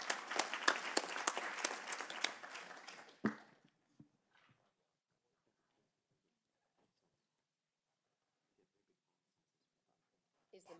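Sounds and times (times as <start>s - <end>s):
audience applause: 0.0s - 3.6s.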